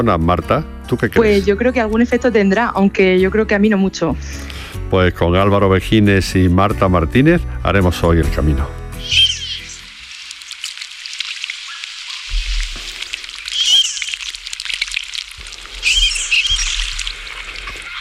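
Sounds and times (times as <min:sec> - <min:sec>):
speech: 0:00.0 - 0:09.4
marbled teal splashing in a lagoon: 0:09.4 - 0:17.9.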